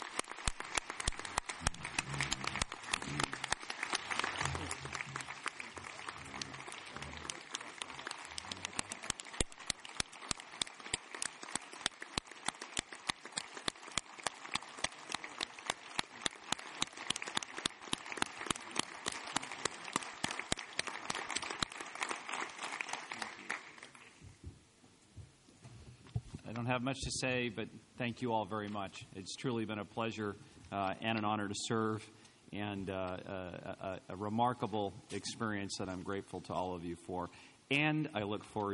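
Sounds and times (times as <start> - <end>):
audience round of applause: 0.0 - 24.2
speech: 26.7 - 38.7.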